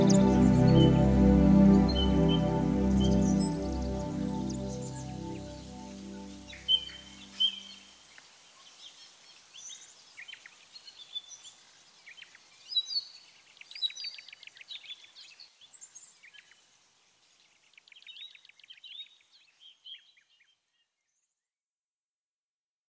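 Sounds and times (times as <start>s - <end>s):
ambient keyboards: 0.0s - 7.5s.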